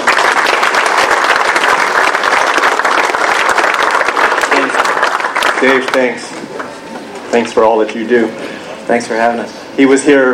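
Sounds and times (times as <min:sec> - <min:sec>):
audience applause: 0:00.0 - 0:06.7
speech: 0:05.6 - 0:06.3, 0:07.3 - 0:10.3.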